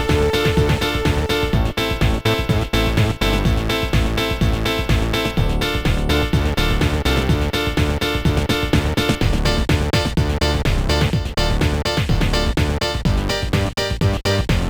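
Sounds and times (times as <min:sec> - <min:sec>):
octave tracker music on a sound card: 0:00.0 - 0:14.6.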